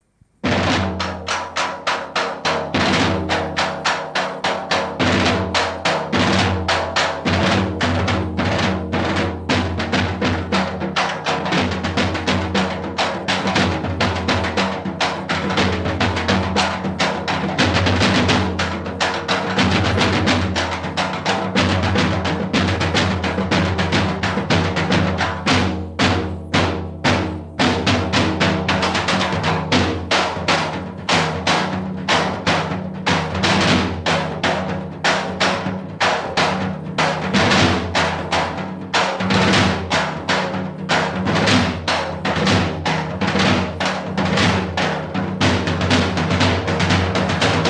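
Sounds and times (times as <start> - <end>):
instrumental music: 0.0 - 47.6.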